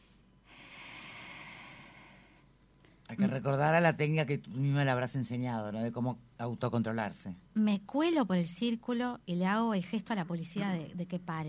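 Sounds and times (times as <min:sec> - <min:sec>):
slow calming breath demonstrated by a speaker: 0:00.0 - 0:03.1
speech: 0:03.2 - 0:11.4.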